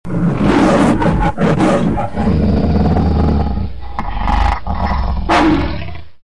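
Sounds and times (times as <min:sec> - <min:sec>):
lion roar: 0:00.1 - 0:06.2.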